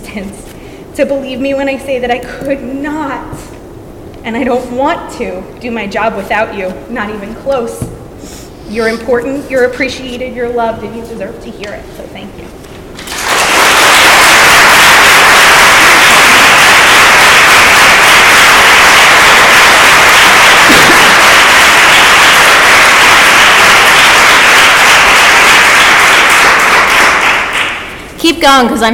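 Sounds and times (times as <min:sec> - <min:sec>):
speech: 0:00.2 - 0:03.5, 0:04.2 - 0:12.6, 0:28.4 - 0:28.9
applause: 0:13.0 - 0:28.0.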